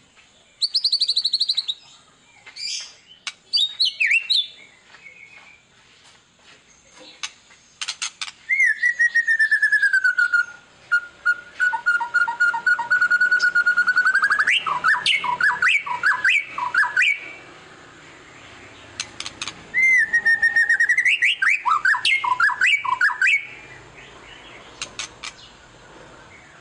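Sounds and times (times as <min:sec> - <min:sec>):
white-rumped shama singing trills and whistles: 0:00.6 - 0:01.8, 0:02.6 - 0:04.6, 0:07.2 - 0:17.4, 0:19.0 - 0:23.8.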